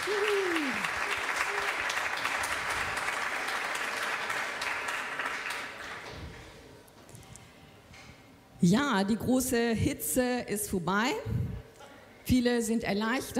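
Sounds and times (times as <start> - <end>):
audience applause: 0.0 - 6.2
speech: 8.6 - 11.5, 12.3 - 13.3.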